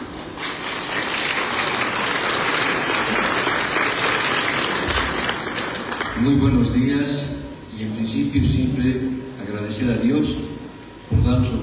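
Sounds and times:
audience applause: 0.2s - 6.2s
speech: 6.2s - 10.5s, 11.2s - 11.6s.

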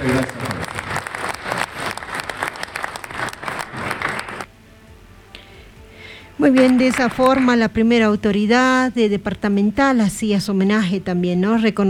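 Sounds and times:
speech: 0.0s - 0.4s, 6.4s - 11.8s
crowd applauding: 0.0s - 4.5s
faint stray clap: 0.0s - 4.5s.

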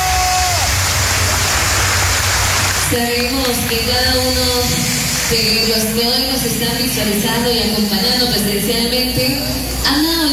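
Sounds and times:
audience applause: 0.0s - 4.0s
speech: 2.9s - 10.3s.

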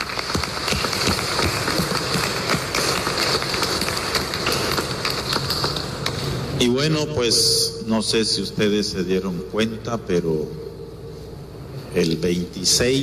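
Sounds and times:
audience applause: 0.0s - 5.8s
speech: 6.6s - 10.7s, 11.9s - 13.0s.

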